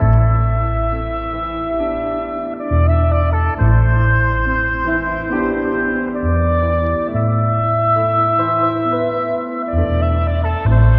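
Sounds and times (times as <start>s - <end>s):
sad horns: 0.0s - 10.9s.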